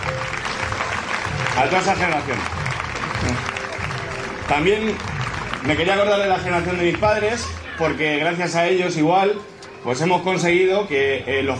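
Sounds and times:
audience applause: 0.0s - 8.0s
speech: 1.6s - 2.6s, 4.5s - 11.5s.

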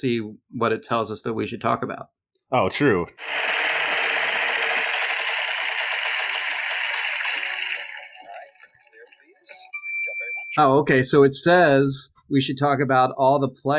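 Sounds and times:
speech: 0.0s - 3.5s, 10.6s - 13.7s
spinning prize wheel clicking, the wheel of badness: 3.2s - 10.6s.

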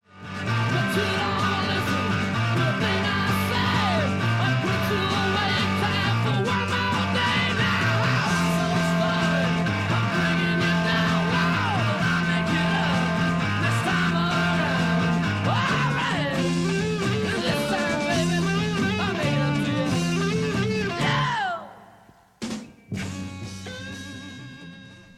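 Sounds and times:
chugging bass riff in 1968 heavy rock recording: 0.0s - 21.3s
distorted guitars in 1968 heavy rock recording: 0.0s - 25.1s.

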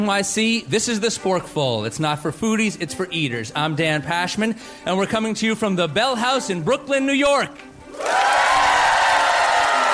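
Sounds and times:
speech: 0.0s - 8.4s
live audience applauding and cheering at the Bell House in Brooklyn: 7.9s - 9.9s.

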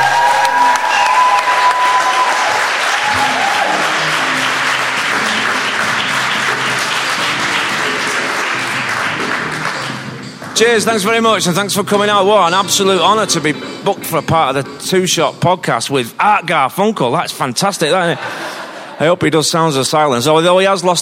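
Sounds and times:
cheers and whoops: 0.0s - 4.5s
crowd applause: 0.0s - 11.4s
speech: 10.6s - 21.0s
laughter: 17.9s - 19.2s.

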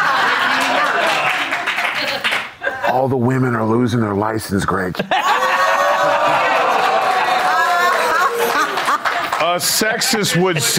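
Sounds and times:
audience clapping: 0.0s - 2.6s, 6.0s - 10.5s
laughter: 0.0s - 3.1s, 5.0s - 10.7s
speech: 3.0s - 5.3s, 9.4s - 10.7s.

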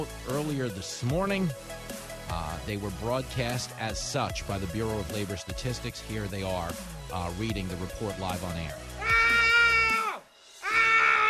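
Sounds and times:
speech: 0.0s - 8.8s
man screaming: 9.0s - 11.2s.

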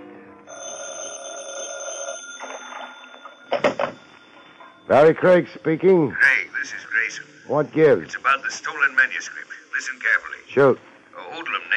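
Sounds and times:
telephone bell ringing: 0.5s - 4.9s
speech: 4.9s - 10.9s.

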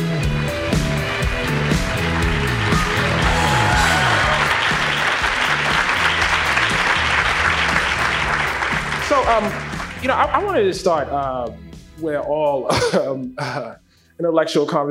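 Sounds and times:
audience applause greeting guests at a live talk event: 0.2s - 10.2s
speech: 9.3s - 14.8s.

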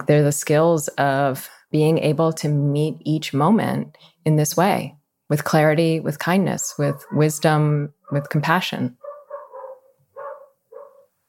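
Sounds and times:
speech: 0.1s - 9.0s
dog barking outdoors: 9.0s - 11.2s.

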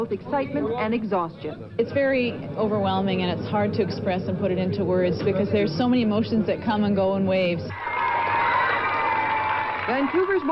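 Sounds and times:
speech: 0.0s - 7.9s, 9.9s - 10.4s
thousands of people cheering a wheelchair marathoner: 7.7s - 10.4s.

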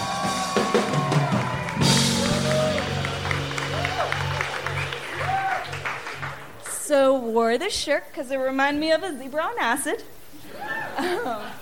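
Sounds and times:
audience whooping and shouting: 0.0s - 6.6s, 10.5s - 11.2s
audience applauding a comedian coming on stage: 0.0s - 6.8s
speech: 6.9s - 10.2s, 11.0s - 11.6s
laughter: 10.4s - 11.6s.

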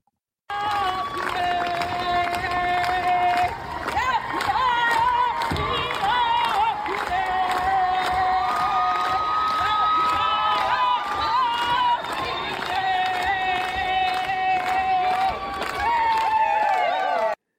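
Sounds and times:
clapping: 0.5s - 17.4s
crowd cheering the first graduates of an Indigenous language fluency degree: 0.5s - 17.4s.

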